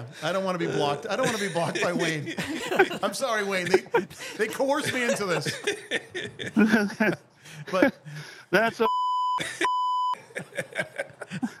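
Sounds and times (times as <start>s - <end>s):
speech: 0.0s - 9.8s, 10.4s - 11.5s
laughter: 0.0s - 11.5s
buzzer: 8.9s - 10.2s.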